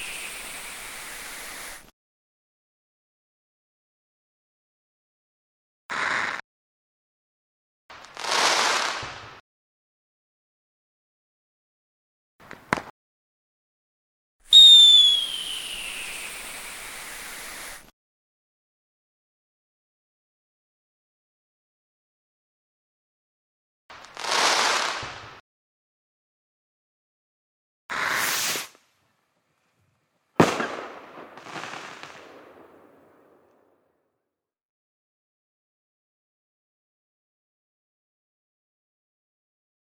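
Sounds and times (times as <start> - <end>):
fireworks for desensitization: 0.0 - 1.8, 5.9 - 6.4, 8.0 - 9.4, 12.4 - 12.9, 14.5 - 17.8, 23.9 - 25.4, 27.9 - 28.9, 30.4 - 33.8.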